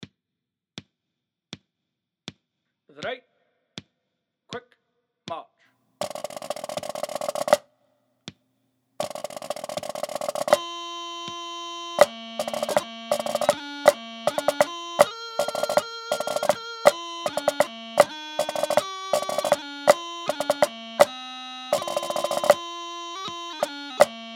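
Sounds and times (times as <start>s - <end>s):
march music in four-four time: 6.0s - 7.6s, 9.0s - 10.6s, 12.0s - 21.1s, 21.8s - 22.6s.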